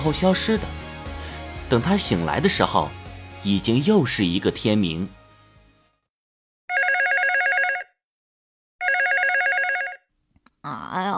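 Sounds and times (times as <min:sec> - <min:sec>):
speech: 0:00.0 - 0:00.8, 0:01.7 - 0:05.2
telephone ringing: 0:06.7 - 0:08.0, 0:08.8 - 0:10.0.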